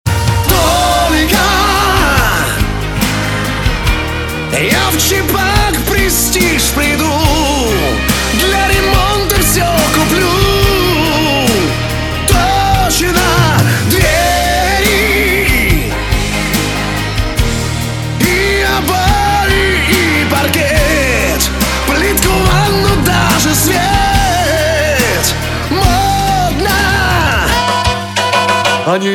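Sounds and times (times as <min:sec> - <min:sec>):
vocals: 0:00.0 - 0:29.1.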